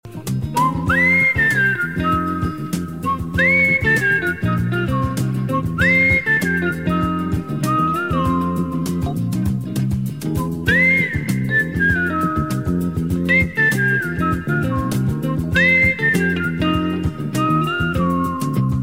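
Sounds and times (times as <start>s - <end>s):
whistle: 0.5s - 18.8s.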